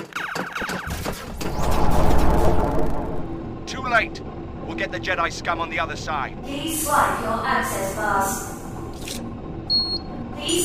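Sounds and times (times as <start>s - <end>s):
sci-fi blaster shots fired by guards: 0.0s - 3.2s
speech: 4.0s - 9.2s.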